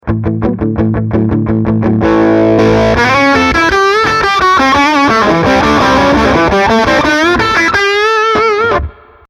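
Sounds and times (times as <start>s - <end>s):
rock music: 0.0s - 9.2s.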